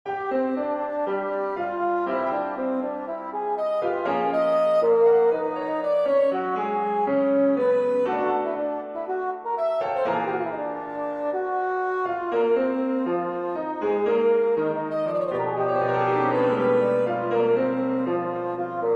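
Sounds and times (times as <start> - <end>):
piano: 0.0 - 18.9
saxophone: 0.1 - 18.9.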